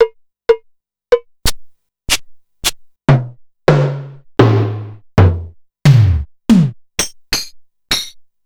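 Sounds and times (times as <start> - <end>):
Simmons MTX9 electronic drums: 2.6 - 8.1.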